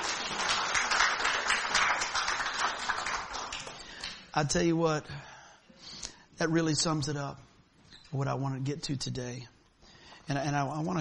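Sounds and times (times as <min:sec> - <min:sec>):
audience clapping: 0:00.0 - 0:04.3
speech: 0:04.4 - 0:05.3, 0:06.4 - 0:07.5, 0:08.1 - 0:09.6, 0:10.3 - 0:10.9.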